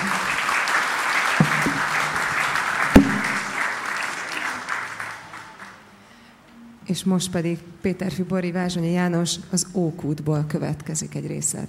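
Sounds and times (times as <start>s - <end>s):
crowd applauding: 0.0s - 5.8s
speech: 6.9s - 11.6s.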